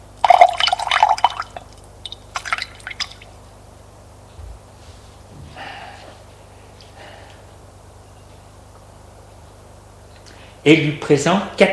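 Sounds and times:
water pouring into a glass: 0.2 - 3.2
speech: 10.6 - 11.7.

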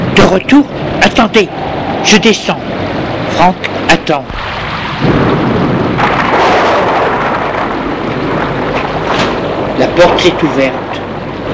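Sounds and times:
heavy rain: 0.0 - 11.5
thunder rumbling: 0.0 - 11.5
speech: 0.3 - 2.7, 3.4 - 5.2, 9.8 - 10.8.

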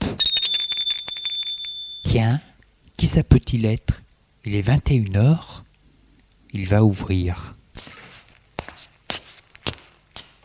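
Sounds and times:
doorbell ringing: 0.0 - 2.5
speech: 2.1 - 5.6, 6.5 - 7.9.

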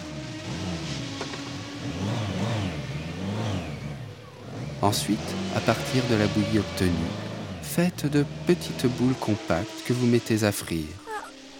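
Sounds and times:
blender grinding pork pieces: 0.0 - 11.2
speech: 4.8 - 11.0.

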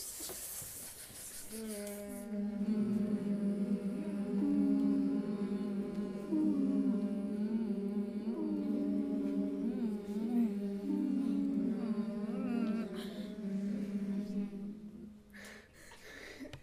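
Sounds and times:
ambience: 1.7 - 15.4.

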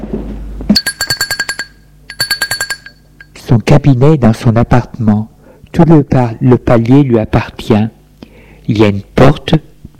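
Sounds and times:
electric doorbell: 0.8 - 3.4
speech: 3.5 - 8.0, 8.7 - 9.7.

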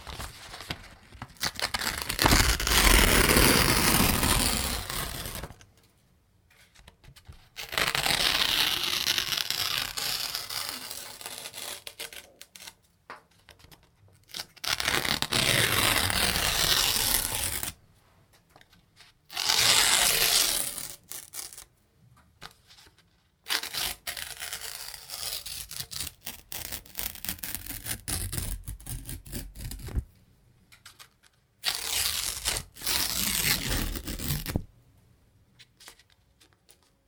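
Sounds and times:
paper tearing: 0.1 - 5.6, 7.6 - 12.8, 14.3 - 17.8, 19.3 - 21.7, 23.5 - 30.0, 31.6 - 34.7.

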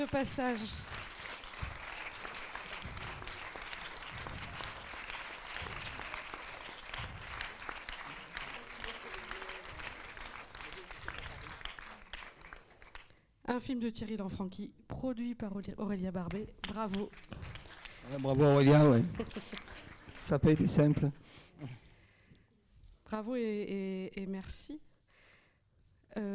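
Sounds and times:
speech: 0.0 - 0.9, 13.6 - 17.4, 18.1 - 19.7, 20.3 - 21.9, 23.1 - 24.9, 26.1 - 26.3
audience applause: 0.0 - 13.1, 17.6 - 21.2
laughter: 18.7 - 20.2.

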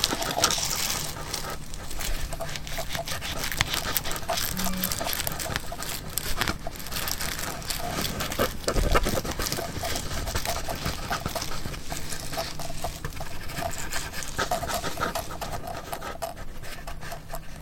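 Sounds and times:
chewing: 0.0 - 17.6
scratching and rubbing: 0.0 - 17.6
soft panting-like breaths: 0.0 - 17.6
low steady hum: 4.2 - 5.7.

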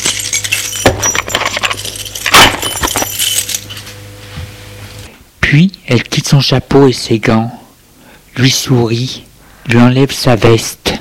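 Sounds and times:
keys jangling as put into bag: 0.0 - 3.9
speech: 5.5 - 7.6, 8.4 - 10.9.

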